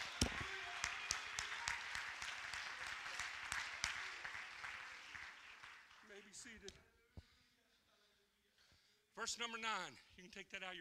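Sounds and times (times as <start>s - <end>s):
audience applauding: 0.0s - 6.6s
speech: 6.4s - 6.9s, 9.2s - 10.8s.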